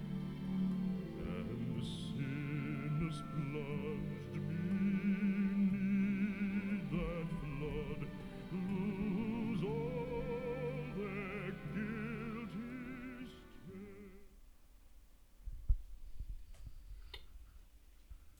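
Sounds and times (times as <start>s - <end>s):
bass-baritone singing: 0.0s - 14.4s.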